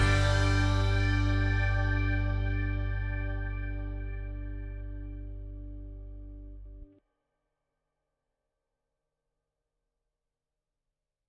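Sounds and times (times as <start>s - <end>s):
guitar backing track: 0.0s - 6.9s.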